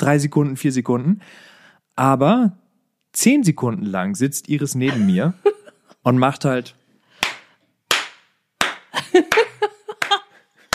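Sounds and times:
speech: 0.0s - 6.8s, 9.2s - 9.5s
laughter: 4.8s - 6.0s, 9.0s - 10.7s
slow sarcastic hand clapping: 7.2s - 10.7s.

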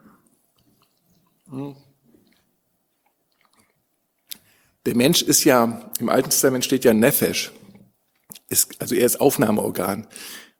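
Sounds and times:
person sipping water from a glass: 0.2s - 4.4s
speech: 1.5s - 1.9s, 4.8s - 7.6s, 8.5s - 10.5s.

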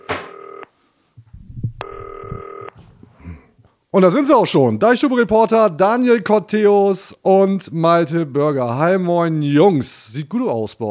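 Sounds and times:
telephone ringing: 0.0s - 0.7s, 1.8s - 2.8s
speech: 4.0s - 10.8s.

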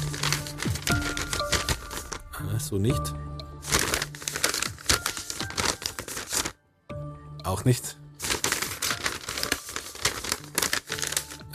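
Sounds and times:
stiff paper road map crinkling as folded: 0.0s - 2.3s, 3.6s - 6.6s, 8.2s - 11.5s
speech: 2.6s - 3.3s, 7.5s - 8.0s.

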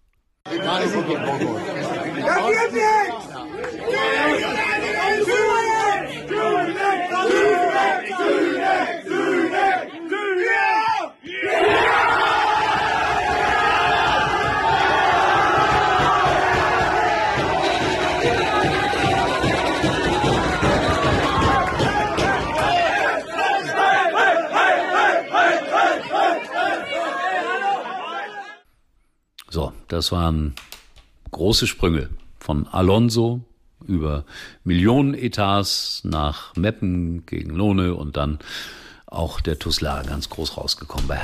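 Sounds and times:
crowd cheering after decisive penalty save: 0.5s - 28.6s
speech: 0.6s - 4.6s, 29.9s - 30.7s, 31.4s - 41.2s.

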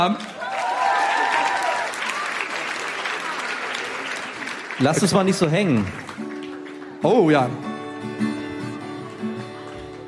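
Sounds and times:
speech: 0.0s - 0.3s, 4.8s - 6.3s, 7.0s - 8.2s
audience applause: 0.0s - 10.0s
voices cheering: 0.3s - 3.7s.

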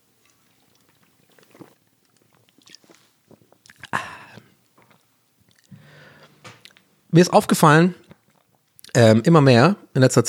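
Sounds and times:
person sipping a drink: 0.2s - 6.8s
speech: 7.1s - 8.0s, 9.0s - 10.2s.

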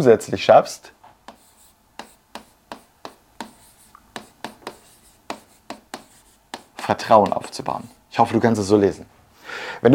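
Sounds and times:
speech: 0.0s - 1.0s, 6.9s - 9.9s
marker squeaking on a board: 1.3s - 8.0s.

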